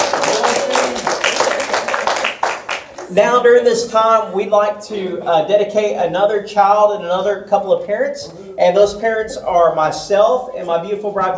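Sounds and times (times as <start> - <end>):
audience applause at a church service child dedication: 0.0 - 3.1
speech: 3.2 - 11.3.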